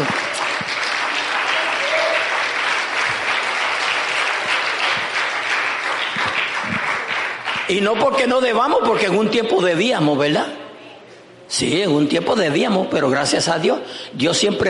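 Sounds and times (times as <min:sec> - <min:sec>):
audience applauding: 0:00.0 - 0:08.3
speech: 0:07.7 - 0:10.6, 0:11.6 - 0:14.6.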